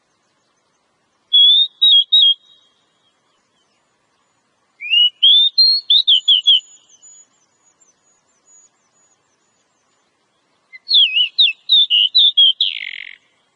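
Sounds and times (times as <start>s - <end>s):
Oriental magpie-robin whistling phrases: 1.3s - 2.7s, 4.8s - 7.3s, 10.7s - 13.2s.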